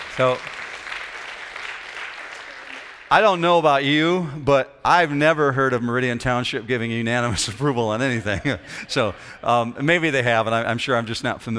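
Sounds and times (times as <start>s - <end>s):
crowd clapping: 0.0s - 3.6s
speech: 0.2s - 0.6s, 3.1s - 11.5s
laughter: 7.2s - 10.4s.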